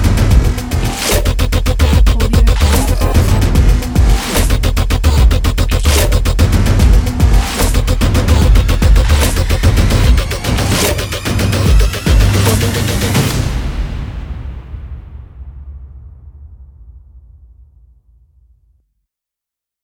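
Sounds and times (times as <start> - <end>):
hybrid sport dubstep music: 0.7 - 13.4.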